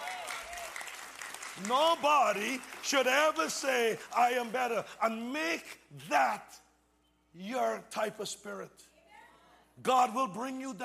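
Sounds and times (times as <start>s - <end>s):
audience applause: 0.0s - 4.8s
speech: 1.6s - 6.6s, 7.4s - 8.9s, 9.8s - 10.8s.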